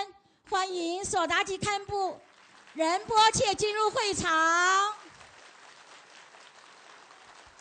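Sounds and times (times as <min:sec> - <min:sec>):
speech: 0:00.6 - 0:05.0
audience applause: 0:02.2 - 0:03.1, 0:04.9 - 0:07.6.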